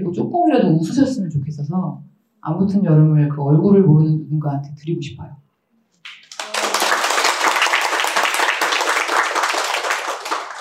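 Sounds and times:
speech: 0:00.1 - 0:05.4
audience applause: 0:06.0 - 0:10.6.

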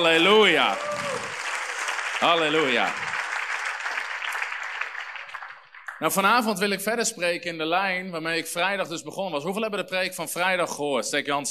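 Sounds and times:
speech: 0:00.0 - 0:01.1, 0:02.2 - 0:03.1, 0:06.0 - 0:11.4
crowd applause: 0:00.0 - 0:06.2.

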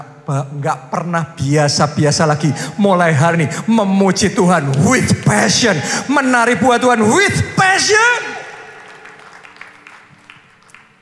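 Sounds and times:
speech: 0:00.0 - 0:08.4
audience clapping hands: 0:08.3 - 0:11.0.

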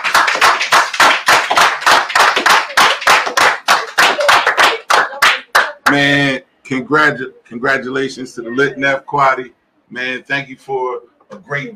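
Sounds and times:
audience clapping: 0:00.0 - 0:06.0
speech: 0:05.9 - 0:11.7.

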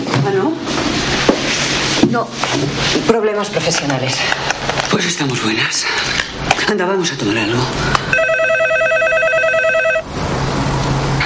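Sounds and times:
low hum: 0:00.0 - 0:11.2
speech: 0:02.1 - 0:08.4
telephone ringing with electronic warble: 0:08.1 - 0:10.1.

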